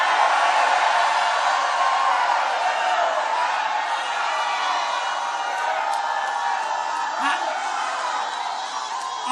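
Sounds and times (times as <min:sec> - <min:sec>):
audience shouting in church: 0:00.0 - 0:09.3.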